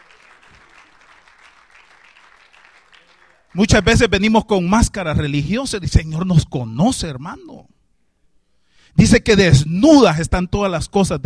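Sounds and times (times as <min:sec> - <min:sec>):
congregation applauding during a church service: 0:00.0 - 0:04.2
speech: 0:03.5 - 0:07.7, 0:09.0 - 0:11.2.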